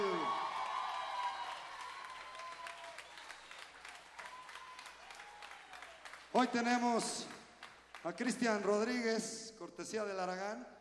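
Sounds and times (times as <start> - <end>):
audience applause: 0.0 - 8.0
speech: 6.4 - 7.4, 8.0 - 10.7.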